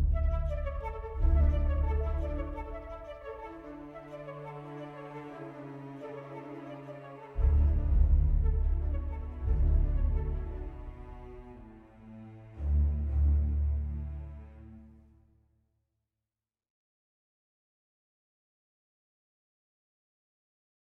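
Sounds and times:
world music: 0.1 - 14.6.

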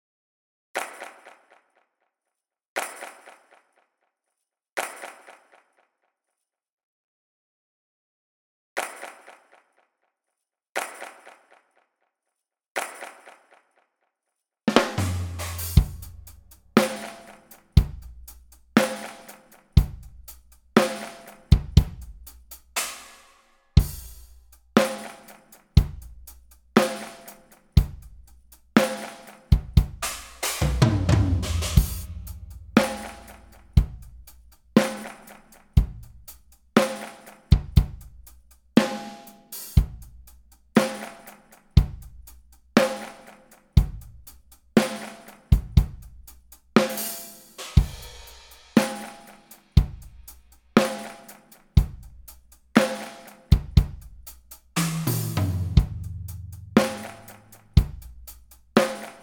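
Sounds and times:
drums: 14.7 - 59.2.

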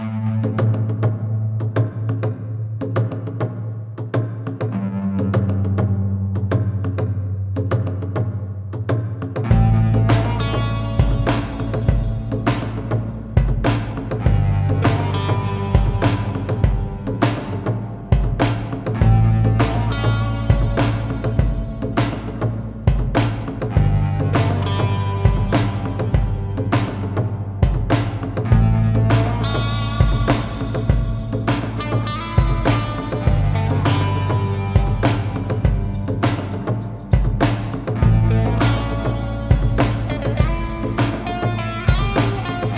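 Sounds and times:
level music: 0.0 - 42.7.

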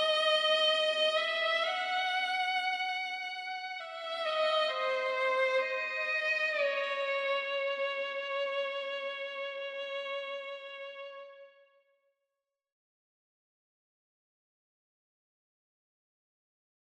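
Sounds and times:
violin lullaby: 0.0 - 11.5.

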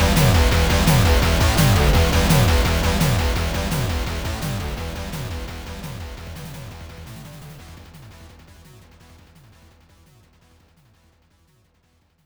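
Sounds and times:
stage two boss battle music: 0.0 - 8.0.

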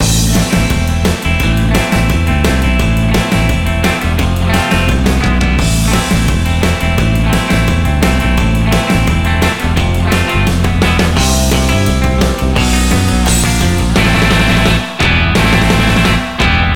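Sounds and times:
surf music: 0.0 - 16.7.

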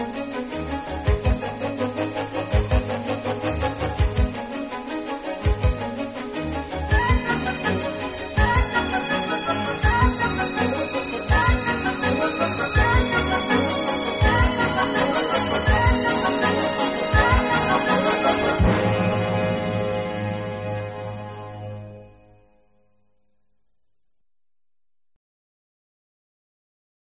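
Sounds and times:
battle music: 1.1 - 21.9.

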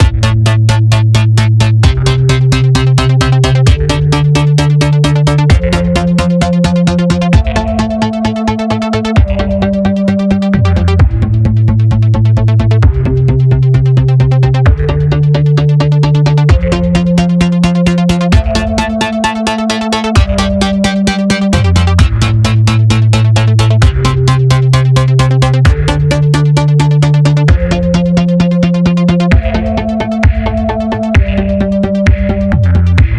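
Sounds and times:
ambient loop: 0.0 - 33.1.

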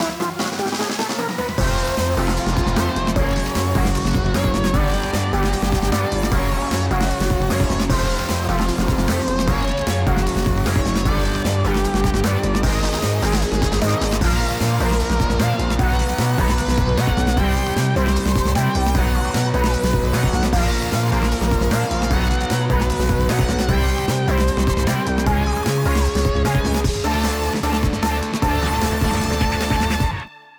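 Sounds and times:
battle music loop: 0.0 - 30.3.

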